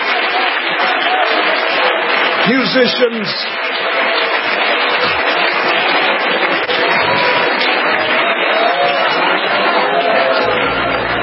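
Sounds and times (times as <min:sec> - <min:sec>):
audience clapping: 0:00.0 - 0:11.2
speech: 0:02.5 - 0:04.0.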